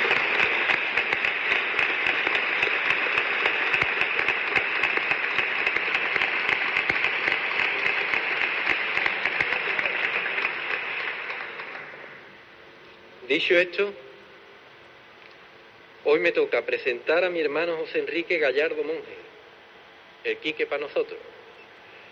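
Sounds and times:
audience applause: 0.0s - 12.3s
speech: 13.4s - 14.0s, 16.2s - 19.2s, 20.2s - 21.3s.

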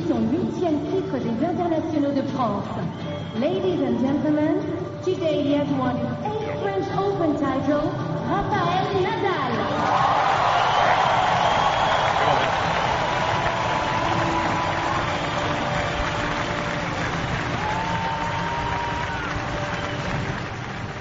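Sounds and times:
speech: 0.1s - 10.2s
stadium crowd applause ovation: 9.6s - 20.9s.

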